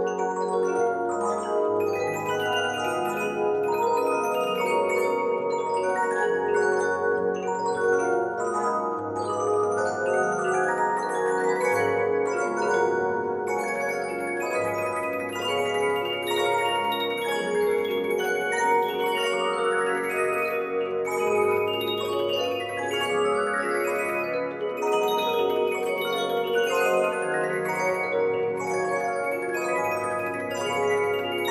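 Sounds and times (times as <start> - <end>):
waltz music: 0.1 - 31.4.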